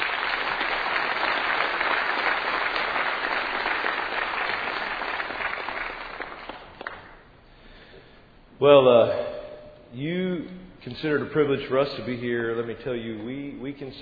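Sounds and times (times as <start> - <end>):
church service audience applause welcoming a speaker: 0.0 - 7.2
speech: 8.6 - 9.3, 9.9 - 14.0.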